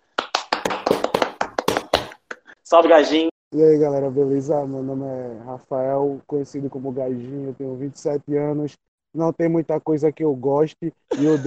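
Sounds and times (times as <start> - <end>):
hand claps: 0.0 - 2.5
speech: 2.7 - 11.4.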